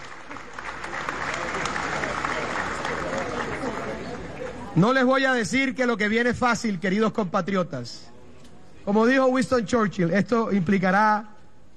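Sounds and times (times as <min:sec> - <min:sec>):
crowd applauding: 0:00.0 - 0:04.8
speech: 0:04.8 - 0:08.1, 0:08.8 - 0:11.3.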